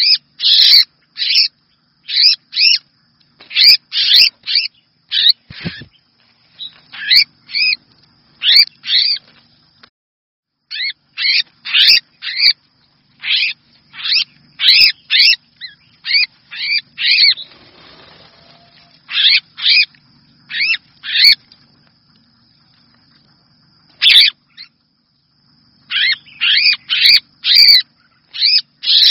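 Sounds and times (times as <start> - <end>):
red-whiskered bulbul distress call: 0.0 - 2.8, 3.4 - 7.8, 8.4 - 9.2, 10.7 - 12.6, 13.2 - 19.9, 20.5 - 21.4, 24.0 - 24.8, 25.8 - 29.1.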